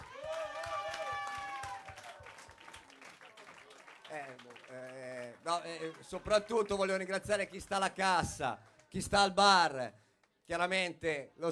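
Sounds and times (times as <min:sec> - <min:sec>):
audience applause: 0:00.0 - 0:08.0
speech: 0:04.2 - 0:11.5.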